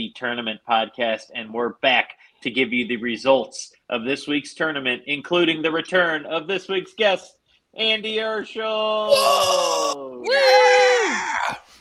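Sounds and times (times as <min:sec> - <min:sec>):
speech: 0:00.0 - 0:11.6
person imitating a crowd cheering: 0:09.1 - 0:11.6.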